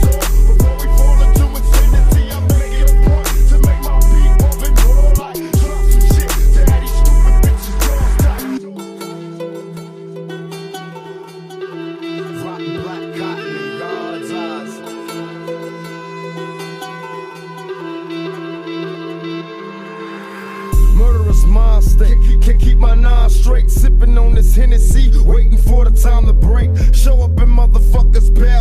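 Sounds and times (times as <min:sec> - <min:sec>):
extreme bass boosted remix: 0:00.0 - 0:08.6, 0:20.5 - 0:28.5.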